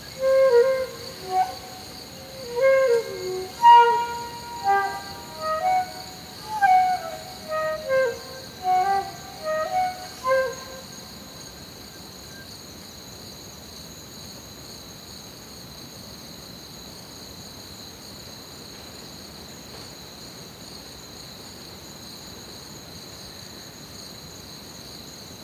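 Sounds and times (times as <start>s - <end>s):
flute note: 0.0s - 11.3s
crickets trilling in chorus: 0.0s - 11.5s.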